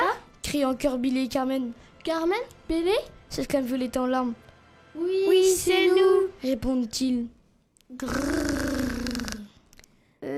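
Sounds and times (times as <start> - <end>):
speech: 0.5 - 4.4, 5.0 - 8.6
menacing growl: 8.0 - 9.5.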